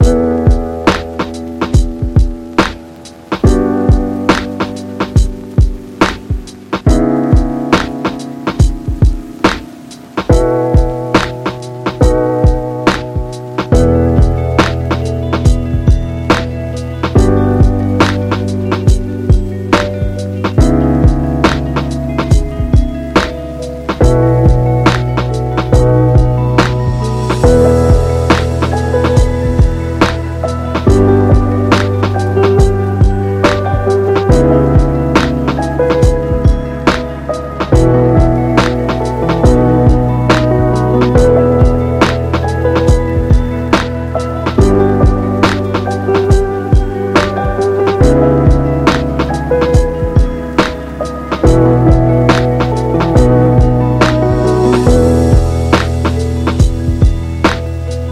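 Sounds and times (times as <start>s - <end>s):
lo-fi music: 0.0s - 58.1s.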